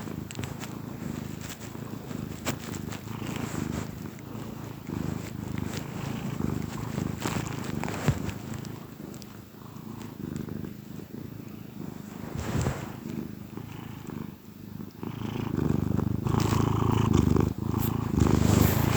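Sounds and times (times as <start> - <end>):
cat purring: 0.0 - 18.9
faint clicks: 0.2 - 10.5.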